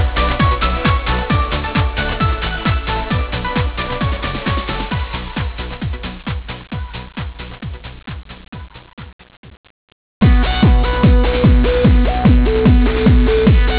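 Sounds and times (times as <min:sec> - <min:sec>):
club music: 0:00.0 - 0:09.0, 0:10.2 - 0:13.7.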